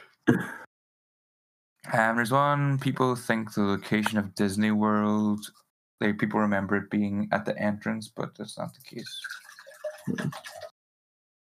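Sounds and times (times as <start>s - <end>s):
speech: 1.9s - 9.4s, 10.0s - 10.7s
water running: 8.6s - 10.7s.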